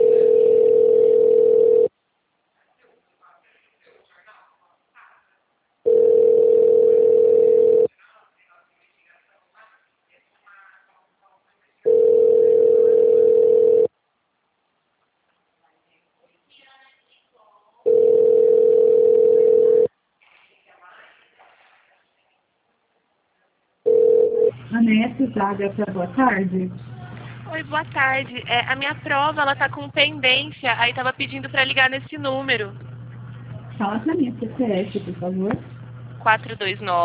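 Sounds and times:
telephone ringback tone while an automated call connects: 0.0 - 1.9, 5.9 - 7.9, 11.9 - 13.9, 17.9 - 19.9, 23.9 - 24.6
speech: 25.2 - 26.9, 27.5 - 32.8, 33.8 - 37.0.

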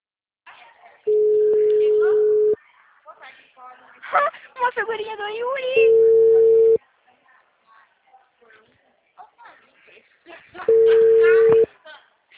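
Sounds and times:
telephone call tone beep: 1.1 - 2.6, 5.8 - 6.8, 10.7 - 11.7
speech: 4.8 - 6.4.

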